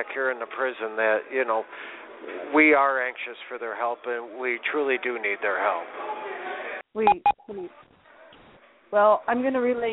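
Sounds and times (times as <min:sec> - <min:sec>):
speech: 0:00.0 - 0:06.2, 0:06.9 - 0:07.8, 0:08.9 - 0:09.9
prison phone call time-limit beep: 0:07.1 - 0:07.5.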